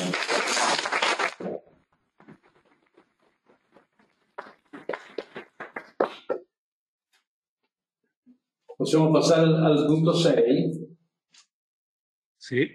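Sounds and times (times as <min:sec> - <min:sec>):
brief applause in a council meeting: 0:00.0 - 0:01.6, 0:04.2 - 0:06.4
speech: 0:08.8 - 0:10.7, 0:12.5 - 0:12.7.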